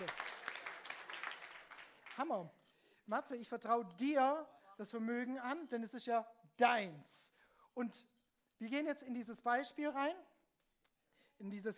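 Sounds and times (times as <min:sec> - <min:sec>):
audience applause: 0:00.0 - 0:02.2
speech: 0:02.2 - 0:07.2, 0:07.8 - 0:10.3, 0:11.4 - 0:11.7.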